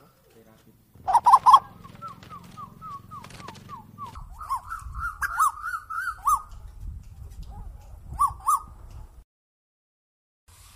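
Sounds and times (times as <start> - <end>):
steady low rumbling noise: 0.9 - 8.2
bird calling wavering notes: 1.0 - 6.8, 8.1 - 8.9.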